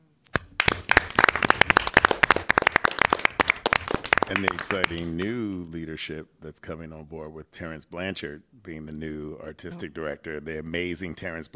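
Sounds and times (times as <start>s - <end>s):
crowd applauding: 0.6s - 5.3s
speech: 4.3s - 11.5s.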